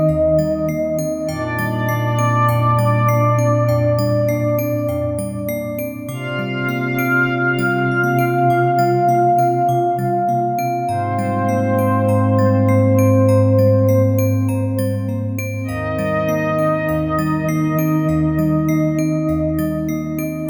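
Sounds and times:
ambient synthesizer: 0.0 - 20.4
glass bells in ambient music: 0.0 - 20.4.

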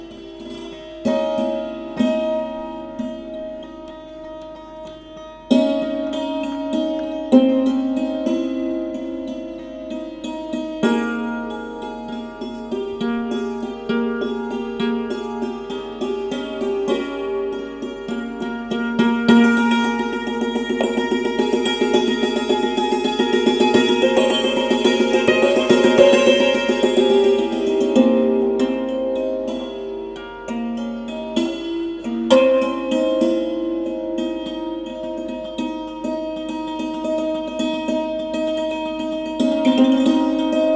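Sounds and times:
santoor playing religious music at Assi Ghat Varanasi: 0.0 - 40.7
tabla playing religious music at Assi Ghat Varanasi: 10.8 - 29.0.

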